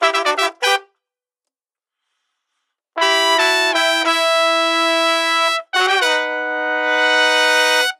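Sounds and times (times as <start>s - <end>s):
brass ensemble: 0.0s - 1.0s, 2.9s - 7.9s.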